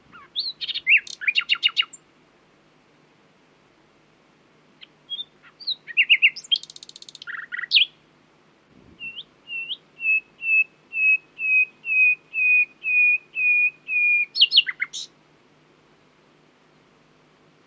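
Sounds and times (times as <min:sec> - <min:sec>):
common nightingale Luscinia megarhynchos singing: 0:00.0 - 0:02.0, 0:04.8 - 0:08.1, 0:09.0 - 0:15.2.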